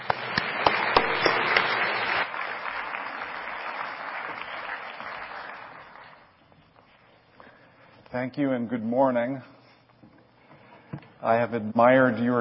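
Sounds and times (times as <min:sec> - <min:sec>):
church audience applauding to welcome a guest speaker: 0:00.0 - 0:06.4
speech: 0:08.2 - 0:09.6, 0:11.2 - 0:12.3.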